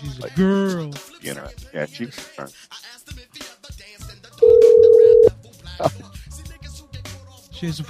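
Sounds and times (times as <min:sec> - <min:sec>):
speech: 0:00.0 - 0:03.4, 0:05.8 - 0:06.0, 0:07.6 - 0:07.8
telephone dial tone: 0:04.4 - 0:05.3.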